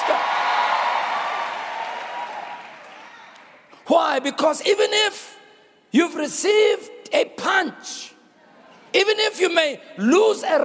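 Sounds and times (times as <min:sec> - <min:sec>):
crowd applauding: 0:00.0 - 0:03.7
speech: 0:03.9 - 0:08.2, 0:08.9 - 0:10.6.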